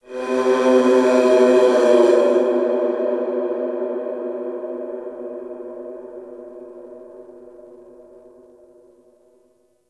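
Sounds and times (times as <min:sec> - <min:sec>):
large creature: 0:00.0 - 0:06.2.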